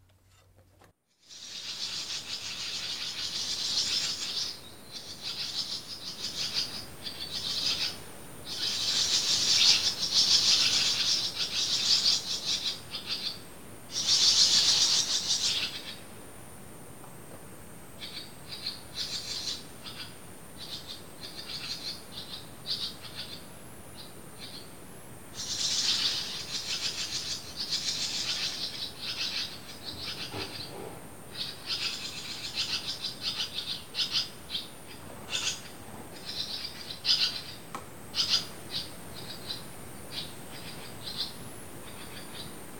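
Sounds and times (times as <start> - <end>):
barn swallow chicks in a woodshed: 1.3 - 16.0, 18.0 - 24.7, 25.4 - 42.6.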